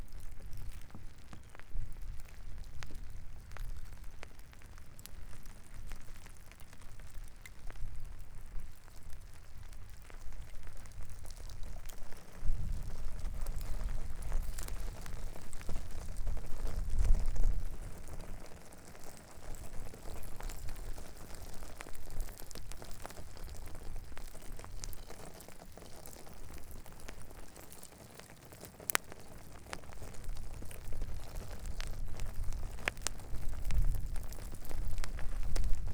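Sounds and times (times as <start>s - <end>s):
lava flowing at Kilauea Volcano in Hawaii: 0.0s - 35.9s.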